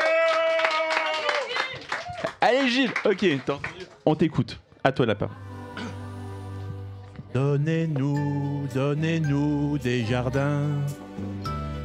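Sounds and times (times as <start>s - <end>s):
audience applause: 0.0s - 4.2s
speech: 2.4s - 5.4s, 7.3s - 11.4s.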